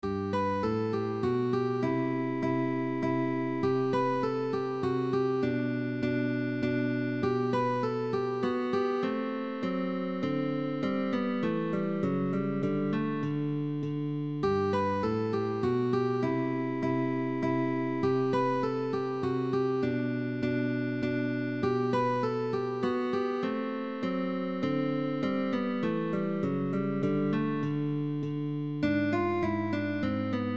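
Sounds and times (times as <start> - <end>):
guitar minuet: 0.0 - 30.5.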